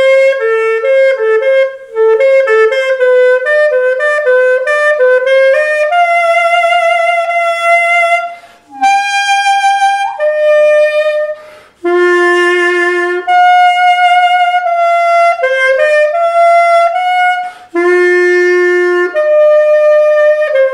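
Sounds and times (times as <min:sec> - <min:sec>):
mini pocket saxophone: 0:00.0 - 0:20.7.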